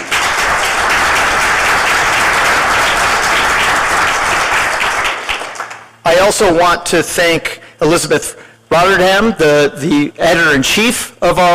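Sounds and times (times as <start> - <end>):
audience applause: 0.0 - 6.0
speech: 6.2 - 11.5.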